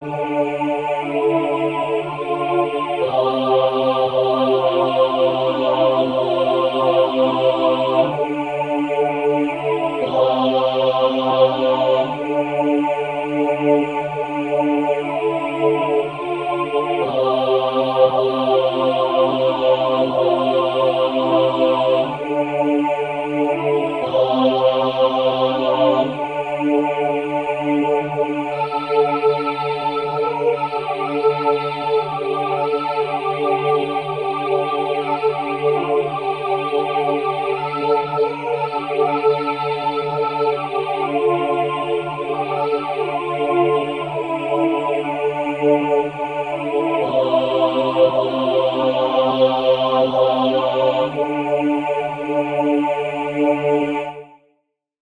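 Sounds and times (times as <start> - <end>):
SATB four-part choir singing: 0.0 - 54.5.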